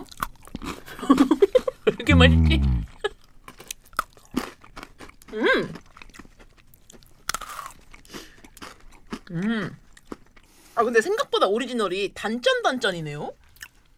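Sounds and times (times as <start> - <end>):
person humming: 2.1 - 2.9
someone chewing a snack cookie: 2.1 - 10.4
speech: 2.2 - 2.9, 10.9 - 13.4.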